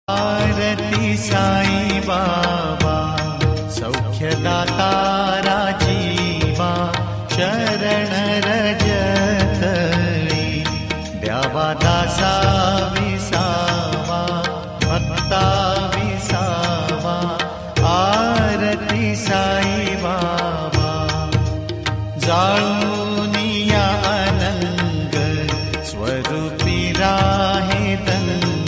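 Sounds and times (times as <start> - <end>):
devotional arati ringtone: 0.1 - 28.6.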